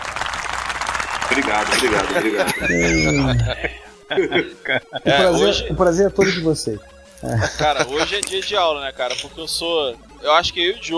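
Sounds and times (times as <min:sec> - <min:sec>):
applause for guests arriving on a talk show: 0:00.0 - 0:02.4
laughter: 0:01.3 - 0:09.4
speech: 0:01.3 - 0:10.9.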